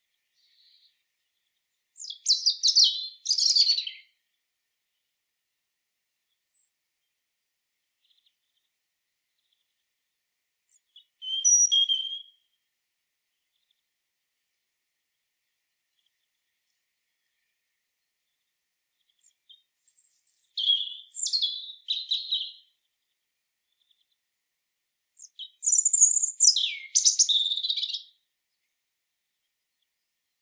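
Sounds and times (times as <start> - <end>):
European robin song: 0.0 - 5.1, 6.3 - 7.2, 10.7 - 12.7, 15.4 - 24.2, 25.2 - 28.8.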